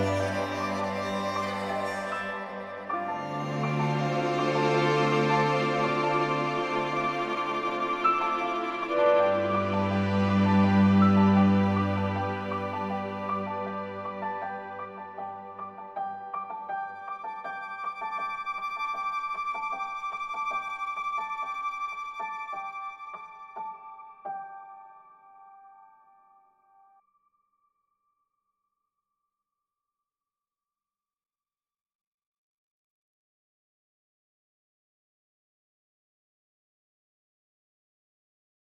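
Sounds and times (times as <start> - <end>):
violin: 0.0 - 24.7
piano: 0.0 - 27.0.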